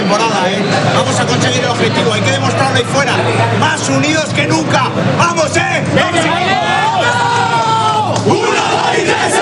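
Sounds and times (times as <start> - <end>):
speech: 0.1 - 6.0
football team's group battle cry: 6.5 - 9.4.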